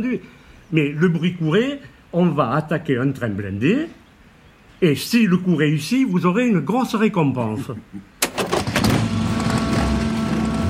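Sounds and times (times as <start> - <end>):
speech: 0.0 - 4.0, 4.8 - 8.2
clattering bursts: 8.2 - 10.6
droning engine rumble of sidecars, motorcycles, cars and trucks: 8.5 - 10.6
sidecars, motorcycles, cars and trucks arriving at Neuvic-sur-l'Isle, France: 8.5 - 10.6.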